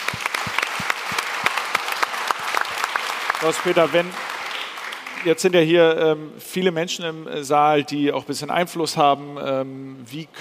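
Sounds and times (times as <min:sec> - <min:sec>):
audience clapping: 0:00.0 - 0:05.7
speech: 0:03.4 - 0:04.3, 0:05.2 - 0:10.4.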